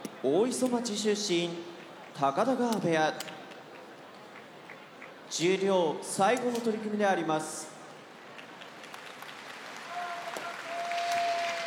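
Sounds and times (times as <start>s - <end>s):
speech: 0.2s - 3.3s, 5.3s - 7.7s
audience applause: 8.2s - 11.6s.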